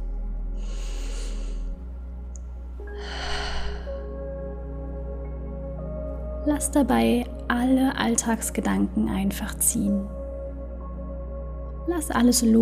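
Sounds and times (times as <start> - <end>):
quiet sustained musical drone: 0.0 - 12.5
deep breath in through the nose and out through the mouth during a heart meditation: 0.6 - 1.8, 2.9 - 4.2
speech: 6.5 - 10.2, 11.9 - 12.5.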